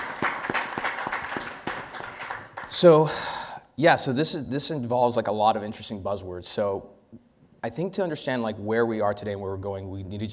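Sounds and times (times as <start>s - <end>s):
audience applause: 0.0s - 2.8s
speech: 2.8s - 10.3s.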